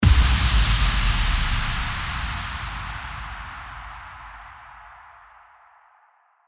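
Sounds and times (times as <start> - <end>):
impact: 0.0 - 5.3.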